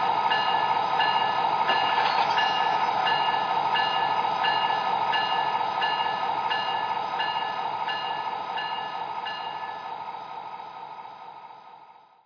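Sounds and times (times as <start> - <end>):
SD60 trains: 0.0 - 12.2.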